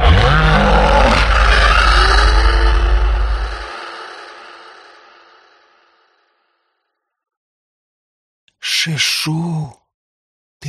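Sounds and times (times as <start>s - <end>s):
furious roar of a beast rushing into battle: 0.0s - 5.7s
speech: 8.8s - 9.8s.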